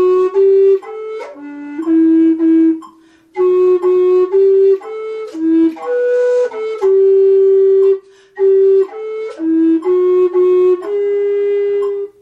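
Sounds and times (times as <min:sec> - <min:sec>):
flute playing a pavane in G and E minor: 0:00.0 - 0:12.2.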